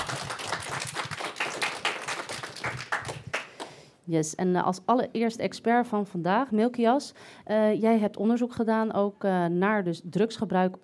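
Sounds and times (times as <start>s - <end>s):
studio audience applause: 0.0s - 3.8s
speech: 4.1s - 10.8s.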